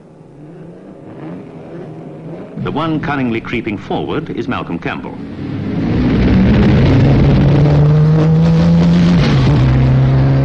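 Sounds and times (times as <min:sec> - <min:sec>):
light racing cars in a Junior Car Club race at Brooklands: 0:00.0 - 0:10.4
speech: 0:02.6 - 0:05.6.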